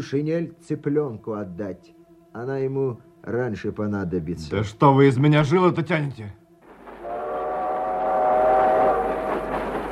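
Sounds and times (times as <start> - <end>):
speech: 0.0 - 6.4
long train horn: 7.0 - 9.8.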